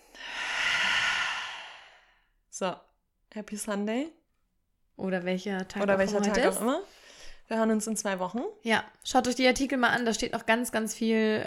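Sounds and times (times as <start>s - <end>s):
breathing in and out deeply: 0.0s - 2.4s
speech: 2.6s - 4.2s, 5.0s - 11.4s.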